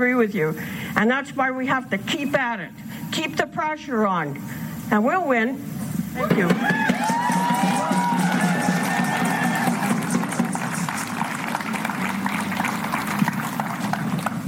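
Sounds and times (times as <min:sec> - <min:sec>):
speech: 0:00.0 - 0:07.2
crowd applause and cheering: 0:06.2 - 0:14.4.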